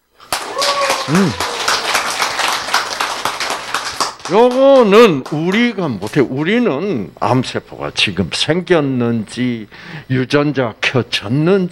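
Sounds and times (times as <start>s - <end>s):
audience applause: 0.2s - 5.6s
speech: 1.1s - 1.4s, 4.3s - 11.7s.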